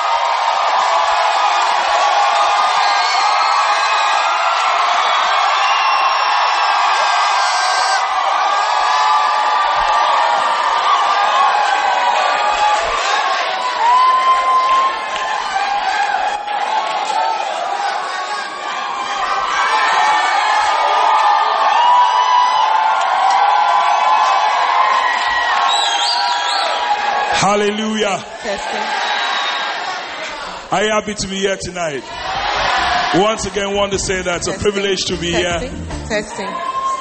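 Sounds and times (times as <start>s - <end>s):
concert crowd cheering, whooping and yelling as a band is welcomed: 0.0s - 36.9s
speech: 27.5s - 29.0s, 30.7s - 32.3s, 33.1s - 36.9s.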